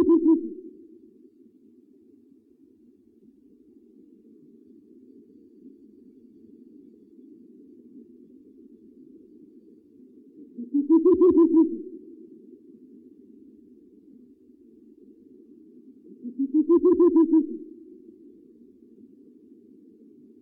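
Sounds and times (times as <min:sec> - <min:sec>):
owl hooting: 0:00.0 - 0:00.8, 0:10.4 - 0:12.3, 0:16.0 - 0:18.0.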